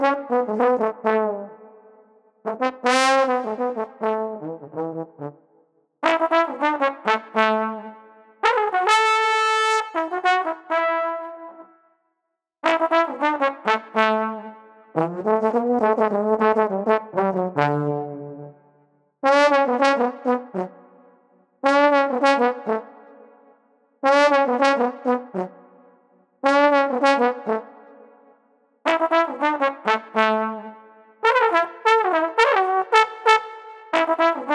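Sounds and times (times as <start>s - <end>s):
jovial trombone: 0.0s - 1.5s, 2.5s - 5.4s, 6.0s - 11.7s, 12.6s - 18.5s, 19.2s - 20.8s, 21.6s - 22.9s, 24.0s - 25.6s, 26.4s - 27.7s, 28.9s - 34.5s.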